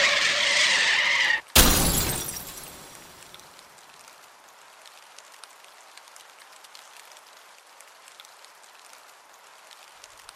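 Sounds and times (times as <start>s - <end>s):
car brakes screeching on wet road: 0.0s - 1.5s
crash with shattering debris: 1.6s - 3.6s.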